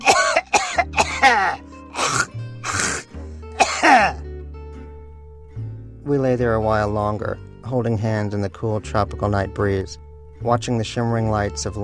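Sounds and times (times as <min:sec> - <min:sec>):
old man coughing up phlegm: 0:00.0 - 0:04.2
speech: 0:01.2 - 0:01.6, 0:06.1 - 0:11.8.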